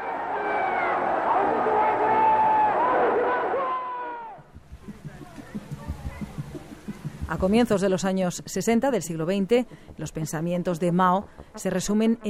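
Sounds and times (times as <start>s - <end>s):
crowd shouting in collective hysteria: 0.0s - 4.5s
speech: 7.3s - 12.2s.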